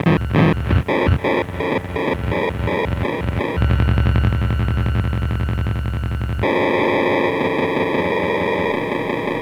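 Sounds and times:
haunted transmission: 0.0s - 9.4s.

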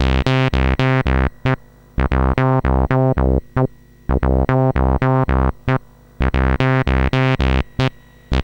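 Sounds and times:
Commodore 64 chiptune bass: 0.0s - 8.4s.

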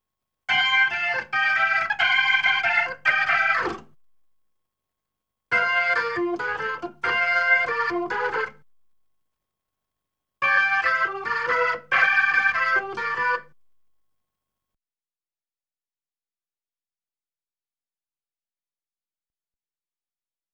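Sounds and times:
Hammond B3 organ: 0.5s - 3.9s, 5.5s - 8.6s, 10.4s - 13.6s.

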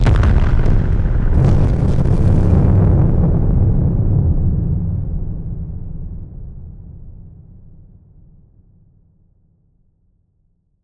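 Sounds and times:
blast explosions: 0.0s - 6.5s.

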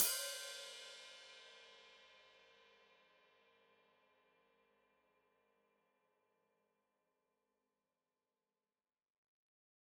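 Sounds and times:
open hi-hat played with foot: 0.0s - 1.3s.

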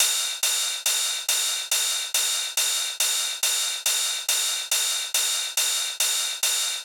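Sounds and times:
140 BPM drum loop with ride cymbal: 0.0s - 6.8s.

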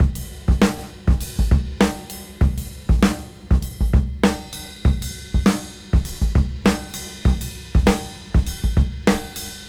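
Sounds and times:
swing music at 98 BPM: 0.0s - 9.6s.

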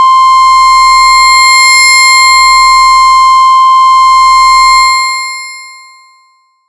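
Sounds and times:
hum: 0.0s - 5.0s.

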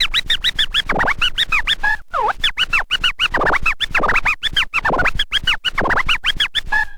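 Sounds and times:
vinyl scratches mix: 0.7s - 6.6s.

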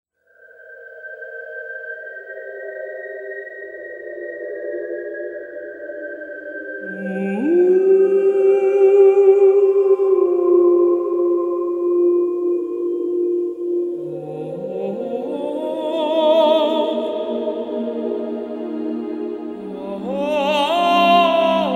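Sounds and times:
tenor singing: 6.8s - 21.7s.

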